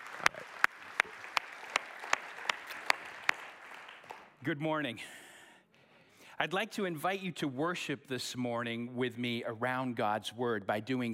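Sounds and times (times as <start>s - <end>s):
church congregation clapping to welcome a speaker to a worship service: 0.0s - 4.4s
speech: 4.4s - 5.2s, 6.4s - 11.1s.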